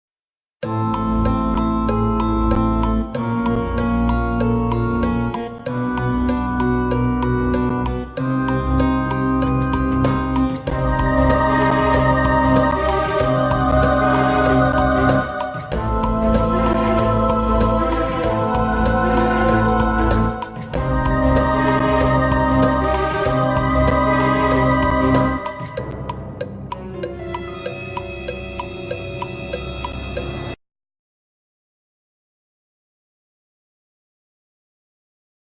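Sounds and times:
Halloween game music countdown: 0.6s - 30.6s.

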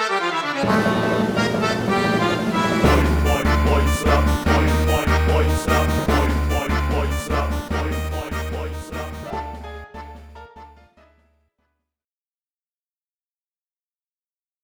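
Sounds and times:
tango music: 0.0s - 10.8s.

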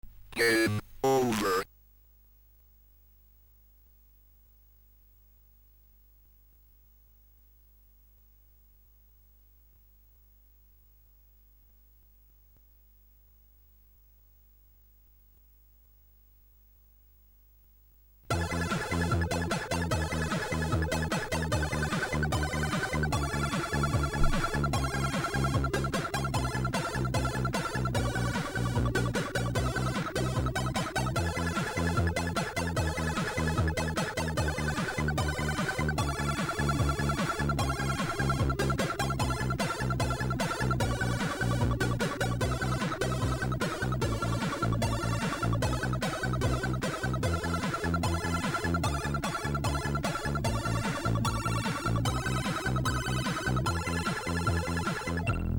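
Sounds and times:
Commodore 64 chiptune music: 0.4s - 1.6s, 18.3s - 55.5s.

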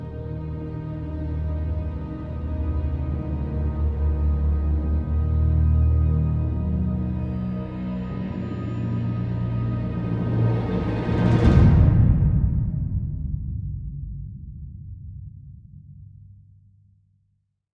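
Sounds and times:
ambient orchestral music: 0.0s - 14.0s.

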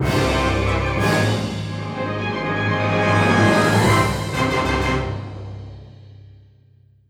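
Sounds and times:
battle cleared victory jingle: 0.0s - 5.2s.

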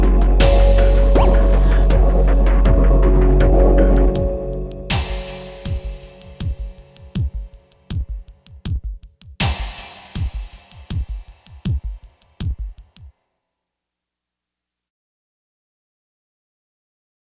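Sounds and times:
heavy tension music: 0.0s - 7.7s.

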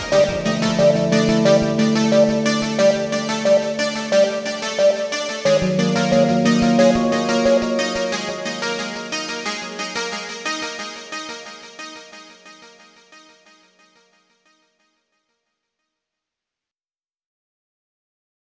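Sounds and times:
end roll music: 0.0s - 11.4s.

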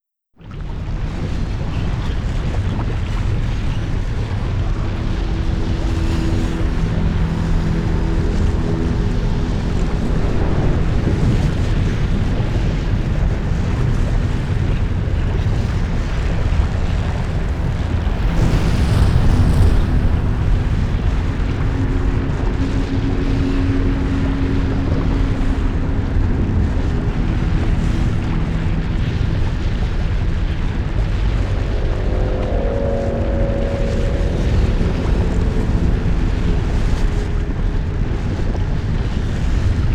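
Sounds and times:
volcano ambience: 0.4s - 39.9s.

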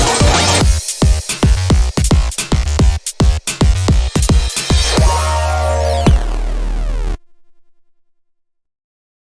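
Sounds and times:
instrumental music: 0.0s - 7.3s.

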